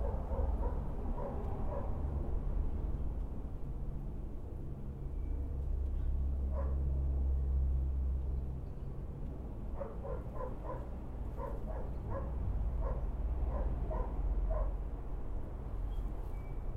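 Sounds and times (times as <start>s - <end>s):
neighbor's dog barking: 0.0s - 2.0s, 6.5s - 6.9s, 9.8s - 14.8s
low rumble of traffic or trains: 0.0s - 16.7s.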